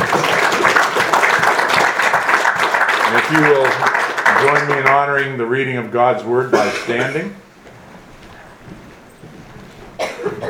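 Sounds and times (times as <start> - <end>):
church congregation applauding: 0.0 - 5.9
speech: 3.3 - 7.4.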